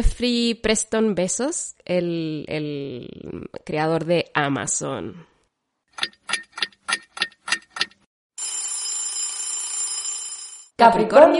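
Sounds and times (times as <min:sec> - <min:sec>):
speech: 0:00.0 - 0:05.3, 0:10.8 - 0:11.3
alarm clock beeping: 0:08.4 - 0:10.7.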